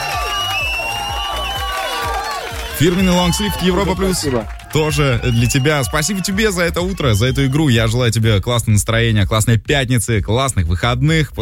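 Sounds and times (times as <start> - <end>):
crowd cheering and applauding for a radio game contestant: 0.0 - 8.0
speech: 2.8 - 11.4.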